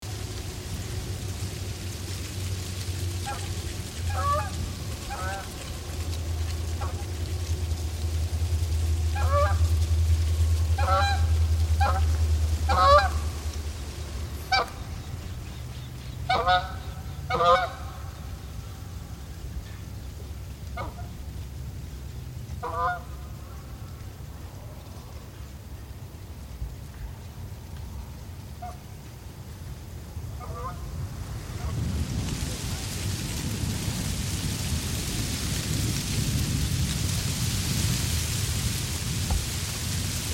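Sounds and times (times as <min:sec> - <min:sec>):
wind: 0:00.0 - 0:40.3
geese honking: 0:03.1 - 0:07.8, 0:09.1 - 0:09.9, 0:10.6 - 0:15.3, 0:16.0 - 0:18.6, 0:20.7 - 0:21.1, 0:22.6 - 0:23.6, 0:30.3 - 0:31.8.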